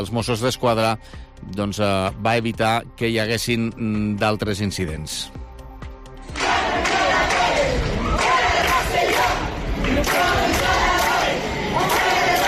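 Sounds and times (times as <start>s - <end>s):
speech: 0.0s - 5.4s
protesters shouting at a demonstration in Rosselló: 6.3s - 12.4s.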